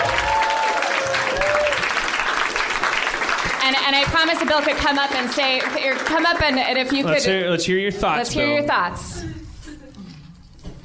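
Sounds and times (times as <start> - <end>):
audience applause: 0.0 - 7.5
speech: 3.9 - 9.3.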